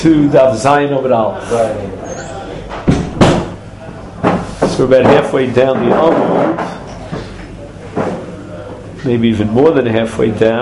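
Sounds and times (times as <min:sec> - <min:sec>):
speech: 0:00.0 - 0:02.3, 0:04.8 - 0:06.8, 0:09.0 - 0:10.6
chairs being moved and rearranged during a Talmud study class: 0:01.4 - 0:08.4.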